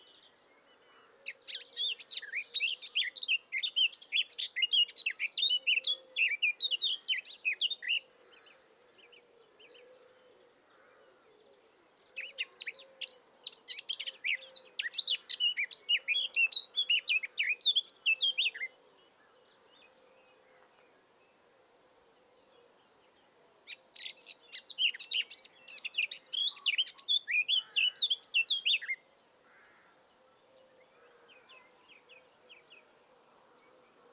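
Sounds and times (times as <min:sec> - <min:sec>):
faint background birds: 0:00.0 - 0:34.1
Eurasian blackcap song: 0:01.2 - 0:08.2, 0:11.8 - 0:21.4, 0:22.8 - 0:29.2.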